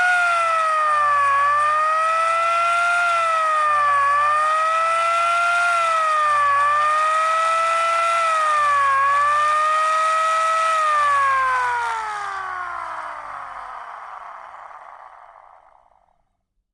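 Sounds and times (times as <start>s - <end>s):
GAZ-69 siren modulating: 0.0s - 16.2s.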